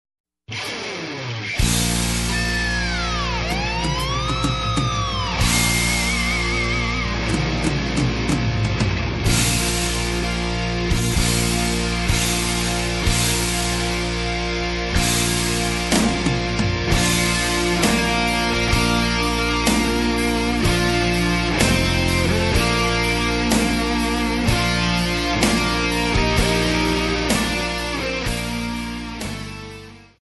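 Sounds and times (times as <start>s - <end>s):
heavy metal wedding march: 0.5s - 30.0s.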